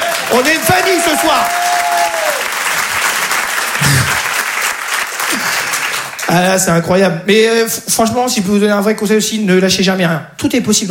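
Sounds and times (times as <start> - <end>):
audience applause: 0.0 - 6.4
speech: 0.3 - 1.9, 6.3 - 10.8.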